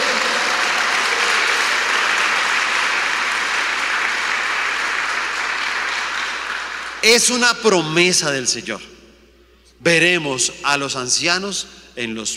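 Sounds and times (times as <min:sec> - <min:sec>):
audience applauding: 0:00.0 - 0:07.2
speech: 0:07.0 - 0:09.0, 0:09.8 - 0:12.3.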